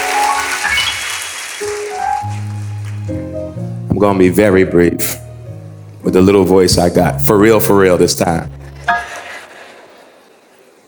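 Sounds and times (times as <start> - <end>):
audience applauding: 0.0 - 3.1
speech: 4.0 - 5.2, 6.0 - 8.6.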